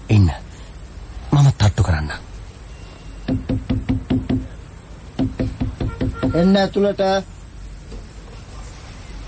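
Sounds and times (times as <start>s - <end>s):
speech: 0.1s - 0.4s, 6.4s - 7.4s
knuckles rapping on a slightly open office door: 3.3s - 4.6s, 5.2s - 6.4s.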